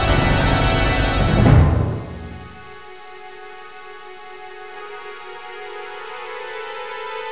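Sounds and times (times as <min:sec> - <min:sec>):
song: 0:00.1 - 0:02.8.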